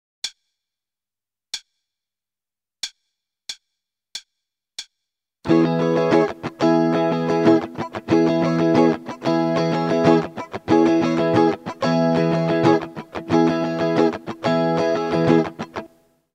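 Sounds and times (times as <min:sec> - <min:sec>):
starter guitar rhythm: 0:05.5 - 0:16.0.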